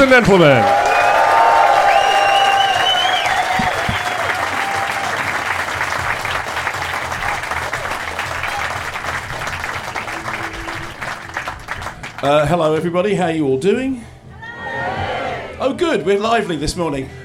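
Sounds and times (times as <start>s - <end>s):
speech: 0.0s - 0.9s, 12.2s - 14.1s, 15.6s - 17.2s
audience applause and cheering: 0.0s - 12.5s.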